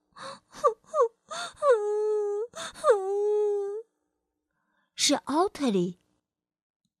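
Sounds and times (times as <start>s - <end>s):
person sobbing and crying: 0.2s - 3.8s
speech: 5.1s - 6.0s.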